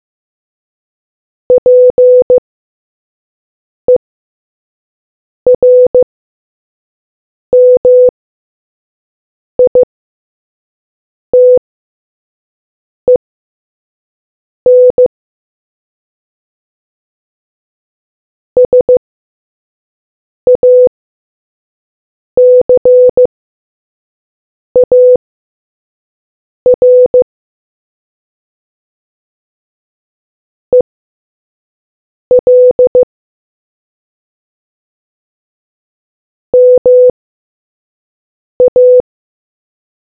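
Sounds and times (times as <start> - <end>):
morse code beeps: 1.6 - 2.4, 5.5 - 6.0, 7.6 - 8.1, 9.6 - 9.9, 11.4 - 11.6, 14.7 - 15.1, 18.6 - 19.0, 20.5 - 20.9, 22.4 - 23.3, 24.8 - 25.2, 26.7 - 27.2, 32.3 - 33.1, 36.6 - 37.1, 38.6 - 39.0.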